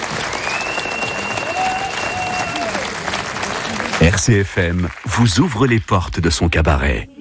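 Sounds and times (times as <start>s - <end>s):
loud applause from a large audience: 0.0s - 6.1s
sustained high whistle-like tone: 0.3s - 2.4s
speech: 4.1s - 7.2s.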